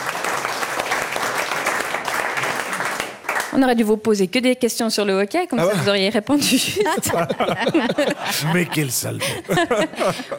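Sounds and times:
audience applause: 0:00.0 - 0:03.6
speech: 0:03.5 - 0:10.3
laughter: 0:05.6 - 0:10.3.

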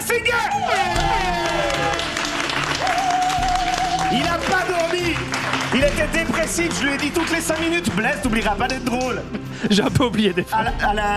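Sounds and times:
whoops and cheering: 0:00.4 - 0:04.8
large crowd applauding: 0:00.5 - 0:09.2
speech: 0:06.0 - 0:11.1.

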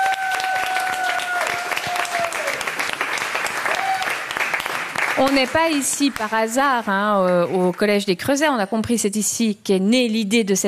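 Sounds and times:
audience applause: 0:00.0 - 0:07.8
speech: 0:05.2 - 0:10.6.

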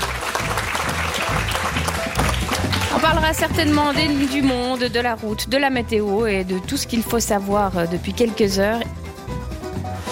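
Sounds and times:
studio audience applauding a guest on a French-language radio show: 0:00.0 - 0:05.1
speech: 0:03.1 - 0:09.0.

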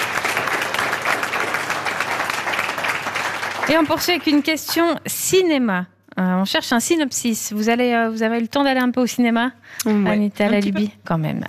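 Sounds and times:
audience applause for guest: 0:00.0 - 0:04.8
speech: 0:03.7 - 0:11.4.

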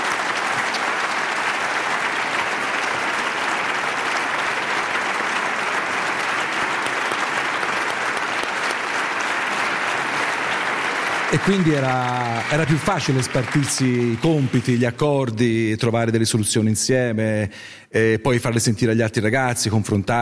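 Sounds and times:
audience applause: 0:00.0 - 0:15.4
speech: 0:11.3 - 0:20.1.

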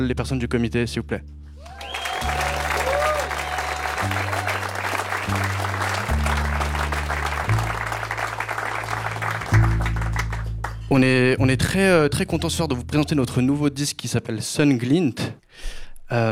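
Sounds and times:
speech: 0:00.0 - 0:01.8, 0:10.9 - 0:16.3
audience applause at a concert: 0:01.6 - 0:10.5.

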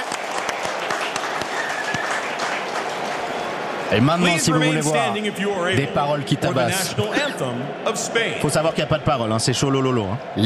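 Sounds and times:
audience applause: 0:00.0 - 0:10.4
speech: 0:03.9 - 0:10.4.

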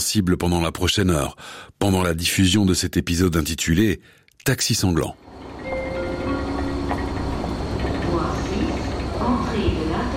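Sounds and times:
rumble of trains and construction machinery at Lausanne railway station: 0:00.0 - 0:10.1
speech: 0:00.1 - 0:05.4
clanks at a construction site: 0:05.4 - 0:09.4.

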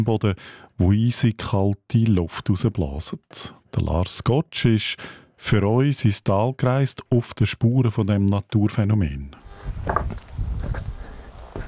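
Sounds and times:
speech: 0:00.0 - 0:10.8
footsteps of a man on a hiking trail through jagged rock in the Muttertal: 0:09.7 - 0:11.6.

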